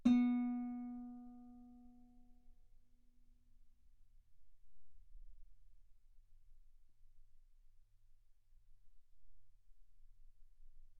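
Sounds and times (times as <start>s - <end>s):
guitar B3 note on B string played fortissimo: 0.0s - 1.4s.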